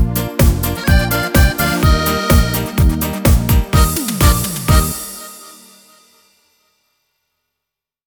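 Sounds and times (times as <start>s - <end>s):
schlager music: 0.0s - 6.4s.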